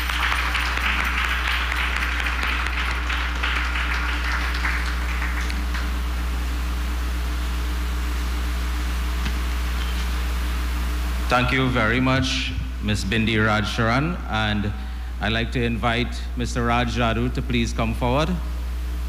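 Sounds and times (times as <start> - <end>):
audience applause: 0.0 - 6.6
constant low electrical hum: 0.0 - 19.0
speech: 11.3 - 18.5.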